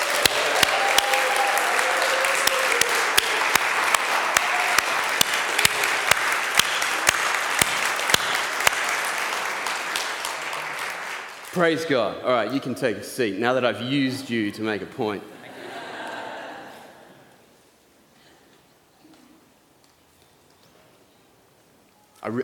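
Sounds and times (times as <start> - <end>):
audience round of applause: 0.0 - 11.8
speech: 11.6 - 15.3
laughter: 15.4 - 17.2.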